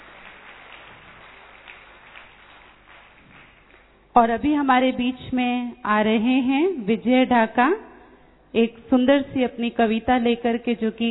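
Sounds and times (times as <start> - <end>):
audience clapping: 0.0 - 4.1
speech: 4.2 - 7.9, 8.5 - 11.0.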